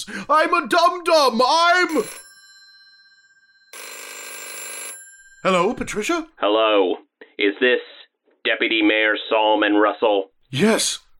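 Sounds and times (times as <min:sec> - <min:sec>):
speech: 0:00.0 - 0:02.2, 0:05.4 - 0:11.0
telephone ringing: 0:00.3 - 0:06.5.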